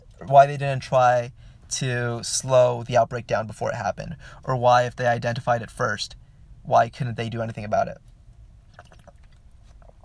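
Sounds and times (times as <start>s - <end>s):
low steady hum: 0.0s - 10.0s
speech: 0.2s - 8.1s
person sipping water: 8.7s - 10.0s
swallowing noises: 8.7s - 10.0s.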